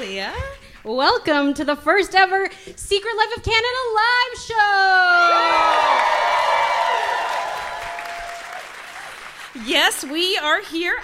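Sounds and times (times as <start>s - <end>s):
speech: 0.2s - 6.3s, 9.6s - 11.0s
live studio audience cheering and whooping at a podcast festival: 5.0s - 9.5s
live audience clapping at a festival show in the Ted Rogers Cinema: 5.2s - 11.0s.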